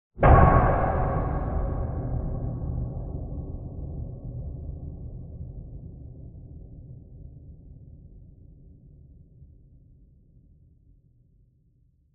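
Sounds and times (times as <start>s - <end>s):
loud metallic impact clunk with reverb: 0.2s - 3.9s.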